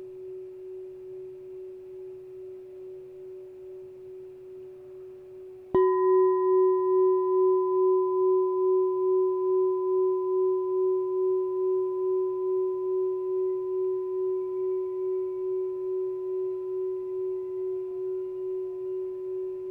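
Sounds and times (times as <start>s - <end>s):
6 inch F sharp chime: 5.7s - 19.6s.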